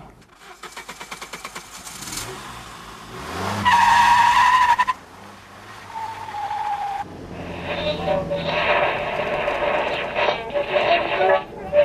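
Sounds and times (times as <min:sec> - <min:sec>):
car engine revving: 0:00.5 - 0:11.8
car tires skidding: 0:01.9 - 0:11.8.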